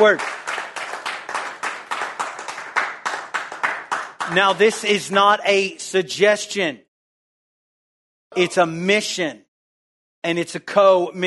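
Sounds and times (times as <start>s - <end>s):
speech: 0.0s - 0.4s, 4.3s - 6.9s, 8.3s - 9.4s, 10.2s - 11.2s
audience clapping hands: 0.0s - 5.4s.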